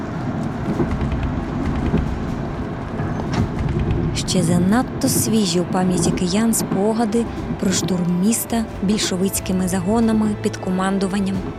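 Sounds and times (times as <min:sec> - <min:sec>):
train wheels clattering: 0:00.0 - 0:11.5
speech: 0:04.4 - 0:11.5.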